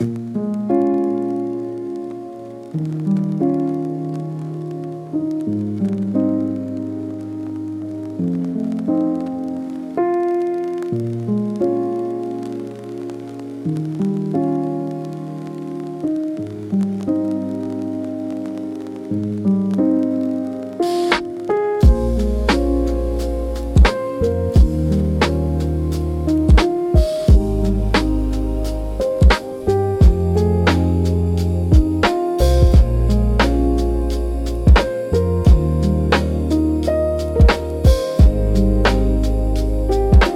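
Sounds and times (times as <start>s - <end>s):
emotional lo-fi piano music: 0.0s - 40.3s.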